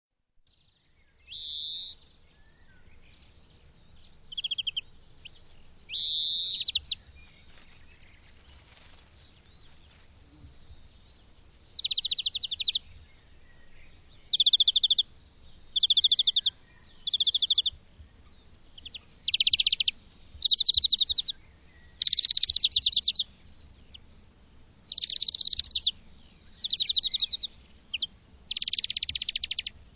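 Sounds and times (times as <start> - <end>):
bird calling in trills: 1.2 - 3.3, 4.3 - 5.3, 5.9 - 9.0, 11.8 - 15.1, 15.7 - 17.8, 18.8 - 23.3, 24.8 - 29.8.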